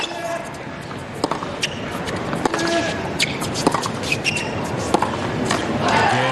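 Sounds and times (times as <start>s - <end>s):
low crowd murmur: 0.0s - 6.3s
tennis ball struck on serve and return in a professional match: 1.2s - 1.7s, 2.3s - 4.0s, 4.8s - 6.0s.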